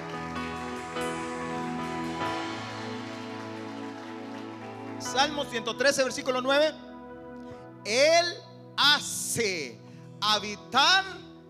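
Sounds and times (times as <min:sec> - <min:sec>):
audience applause: 0:00.0 - 0:05.6
speech: 0:05.2 - 0:06.8, 0:07.9 - 0:11.2.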